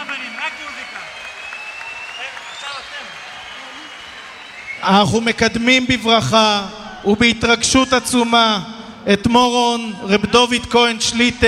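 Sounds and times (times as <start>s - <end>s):
applause for the children: 0.0s - 5.4s
speech: 4.8s - 11.4s.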